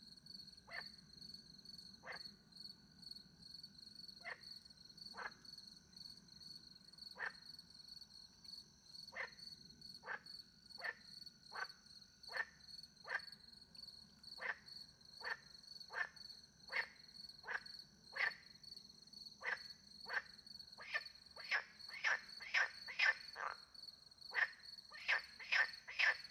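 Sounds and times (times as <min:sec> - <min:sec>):
crickets with pulsing chirp: 0:00.0 - 0:26.2
frog calling with short grating croaks: 0:07.2 - 0:07.4, 0:09.1 - 0:09.4, 0:10.8 - 0:13.3, 0:14.4 - 0:18.4, 0:19.4 - 0:23.7, 0:24.3 - 0:26.2.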